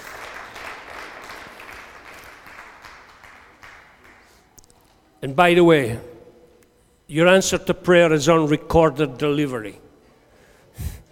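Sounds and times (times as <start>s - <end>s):
audience applause: 0.0s - 4.5s
speech: 5.2s - 6.1s, 7.1s - 9.8s.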